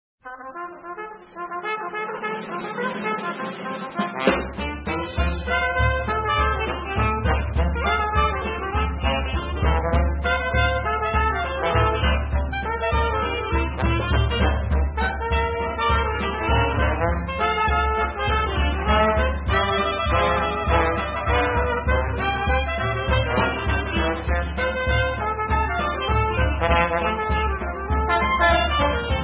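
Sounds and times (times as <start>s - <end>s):
march music: 0.3s - 29.2s.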